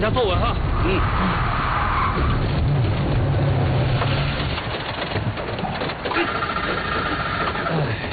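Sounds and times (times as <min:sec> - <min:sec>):
car engine straining uphill then stalling: 0:00.0 - 0:08.1.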